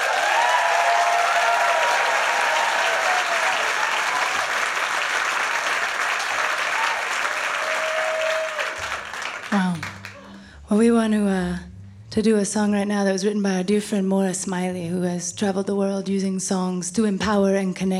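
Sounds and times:
audience applause welcoming a band back to the stage: 0.0 - 10.5
speech: 10.7 - 11.6, 12.2 - 17.9.

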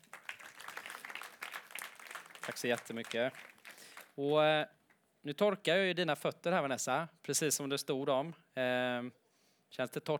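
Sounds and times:
audience applause: 0.0 - 4.2
speech: 2.4 - 3.5, 4.2 - 10.1.

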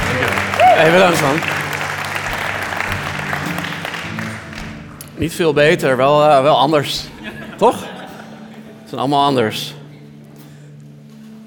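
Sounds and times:
applause from a small group: 0.0 - 5.0
speech: 0.2 - 1.6, 5.2 - 7.9, 8.9 - 9.8
laughter: 7.1 - 9.1.

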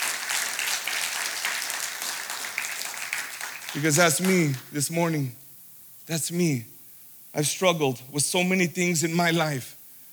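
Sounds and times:
audience clapping: 0.0 - 4.7
speech: 3.7 - 5.4, 6.1 - 6.7, 7.4 - 9.8.

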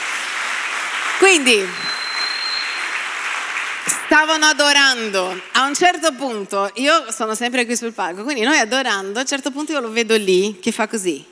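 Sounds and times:
audience applause: 0.0 - 6.0
speech: 1.2 - 1.9, 4.1 - 11.2.

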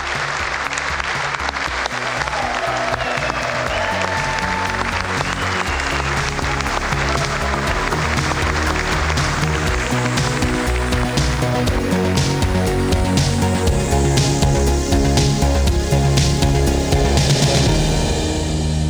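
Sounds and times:
audience applause: 0.0 - 18.8
faint voices and cheers: 1.6 - 12.4.

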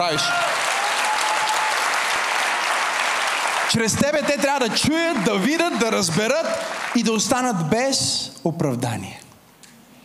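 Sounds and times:
speech: 0.0 - 0.5, 3.7 - 9.2
church congregation applauding during a service: 0.0 - 8.0.

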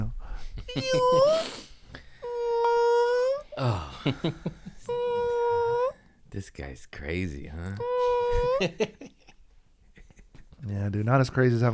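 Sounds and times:
voice imitating whale calls: 0.7 - 1.5, 2.2 - 3.9, 4.8 - 6.0, 7.8 - 8.7
speech: 0.7 - 1.6, 4.0 - 4.6, 6.4 - 9.2, 10.6 - 11.7.

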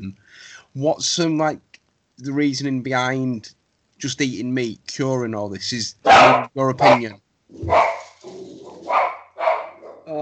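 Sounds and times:
speech: 0.0 - 8.5
dogs barking: 6.0 - 10.1.

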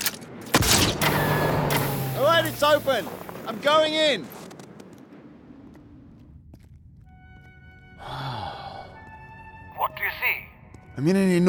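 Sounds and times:
blaster shots striking a control panel: 0.0 - 6.3
blaster shots: 0.5 - 3.3
speech: 2.4 - 4.4, 11.0 - 11.4.

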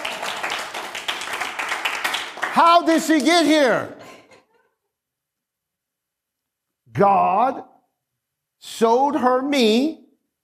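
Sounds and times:
audience clapping: 0.0 - 3.9
speech: 2.6 - 4.0, 7.0 - 7.7, 8.6 - 10.0.

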